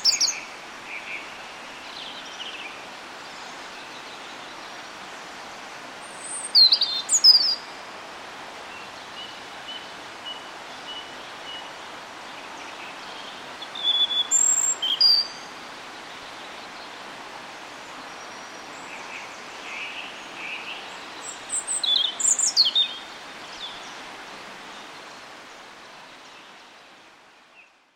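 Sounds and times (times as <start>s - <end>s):
European robin singing: 0.0s - 4.6s, 6.0s - 7.8s, 12.4s - 16.9s, 17.8s - 24.0s
faint hiss: 0.0s - 27.9s.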